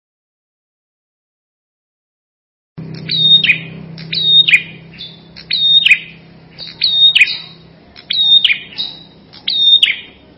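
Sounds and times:
prinia song with sharp high chirped phrases and trilled passages: 2.8s - 10.3s.

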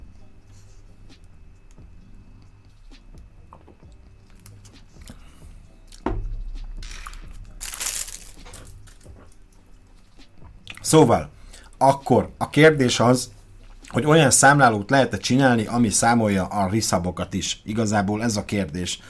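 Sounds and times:
plastic bag crinkling: 6.8s - 9.1s
speech: 10.9s - 19.0s.

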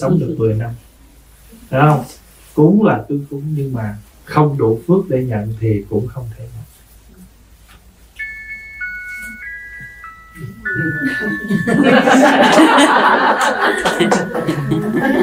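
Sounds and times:
speech: 0.0s - 0.9s, 1.5s - 6.6s, 10.4s - 15.2s
bell chime melody: 8.2s - 15.2s
lively voices and laughter: 10.9s - 15.2s.

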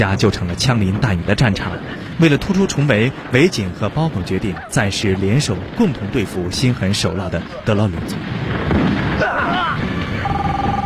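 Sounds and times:
speech: 0.0s - 9.3s
mobile phone ringing on a dead gangster's body in a film scene: 10.2s - 10.8s.

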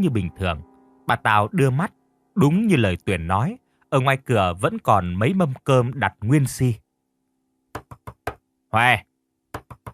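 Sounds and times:
speech: 0.0s - 6.8s, 8.7s - 9.1s
knocking on a wooden door: 7.7s - 8.4s, 9.5s - 9.9s.

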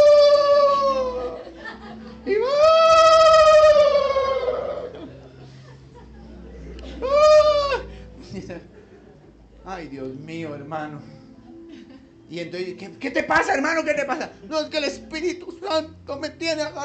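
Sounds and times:
man praying at home, voice mimicking a wailing ambulance siren: 0.0s - 1.4s, 2.3s - 5.0s
laughter: 0.6s - 9.6s
speech: 10.7s - 11.2s, 12.3s - 16.8s.

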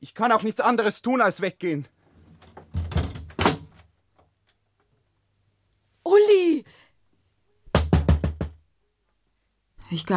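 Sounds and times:
speech: 0.0s - 2.0s
firm knocking on a door: 2.7s - 3.6s, 7.7s - 8.6s.

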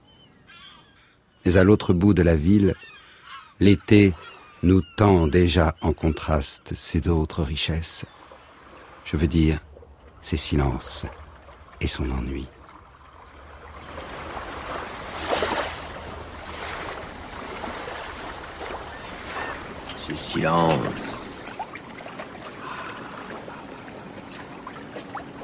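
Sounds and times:
speech: 1.4s - 3.0s, 3.6s - 8.2s, 9.0s - 11.2s, 11.8s - 12.6s, 20.1s - 21.2s
small waves lapping at the water's surface: 4.1s - 5.0s, 7.4s - 25.4s.

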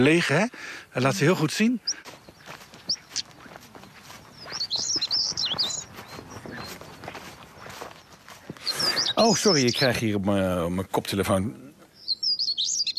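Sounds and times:
speech: 0.0s - 2.2s, 9.2s - 11.6s
crunching footsteps: 0.0s - 10.5s
stonechat alarm call: 1.0s - 10.0s, 11.9s - 12.9s.

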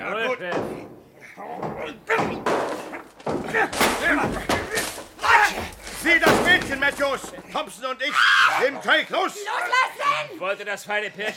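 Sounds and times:
door being broken open: 1.6s - 7.6s
speech: 6.0s - 11.3s.

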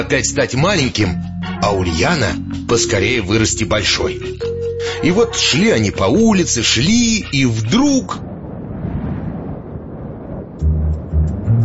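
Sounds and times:
speech: 0.0s - 8.3s
wind rushing along a street: 6.6s - 11.6s
sharp gusts of wind: 7.4s - 11.6s.

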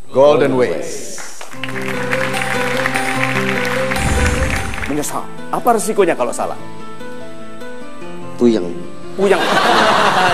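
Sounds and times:
speech: 0.1s - 2.0s, 5.0s - 6.9s, 8.4s - 10.3s
audience applause: 1.4s - 5.2s
laughter: 9.2s - 10.3s.

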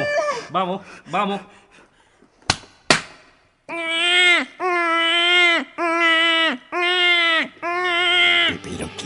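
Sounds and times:
newborn baby crying: 0.0s - 0.4s, 3.7s - 8.6s
speech: 0.5s - 1.8s, 3.7s - 6.7s.

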